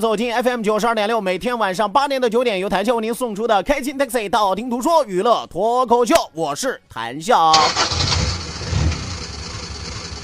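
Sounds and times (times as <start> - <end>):
speech: 0.0 - 8.0
car engine starting: 7.5 - 10.2.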